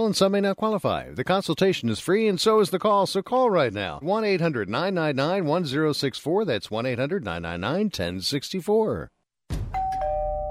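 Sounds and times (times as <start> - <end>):
speech: 0.0 - 9.2
dull low thump: 9.5 - 10.1
doorbell ringing at the front door: 9.8 - 10.4.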